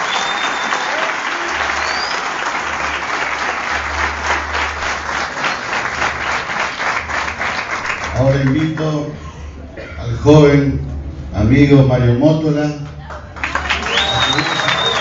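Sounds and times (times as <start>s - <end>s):
audience applause: 0.0s - 9.1s, 12.8s - 14.9s
speech: 8.2s - 9.3s, 10.2s - 13.0s.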